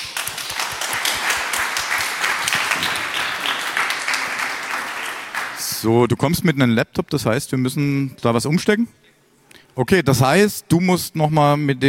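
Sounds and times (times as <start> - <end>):
audience applause: 0.0 - 5.7
speech: 5.8 - 9.0, 9.8 - 11.8.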